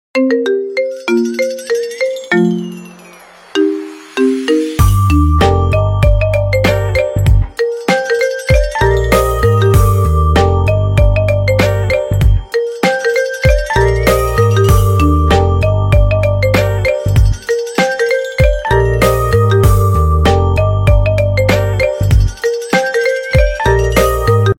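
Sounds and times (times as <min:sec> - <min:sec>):
iPhone ringtone remix: 0:00.2 - 0:24.5.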